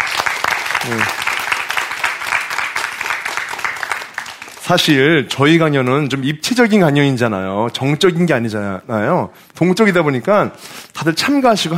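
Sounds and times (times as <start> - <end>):
audience applause: 0.0 - 5.1
speech: 0.8 - 1.3, 4.7 - 11.7.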